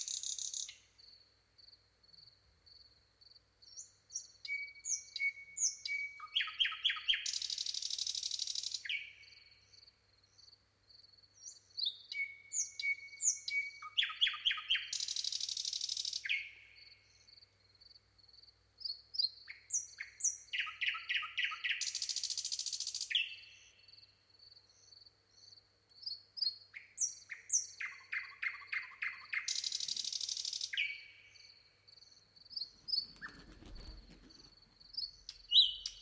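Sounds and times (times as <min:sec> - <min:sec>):
common nightingale song: 0:00.0 - 0:35.9.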